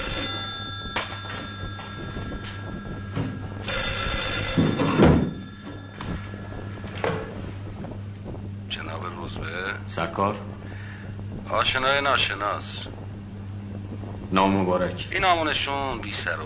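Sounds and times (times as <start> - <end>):
office telephone ringing: 0.0 - 7.6
quiet hum: 0.0 - 16.4
speech: 10.0 - 10.7, 11.5 - 13.0, 14.3 - 16.4.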